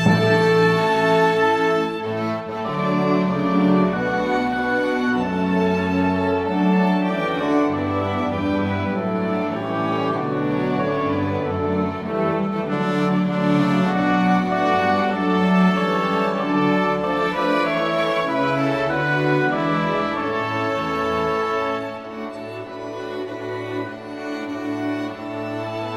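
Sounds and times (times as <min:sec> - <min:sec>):
orchestra playing accompaniment: 0:00.0 - 0:25.9.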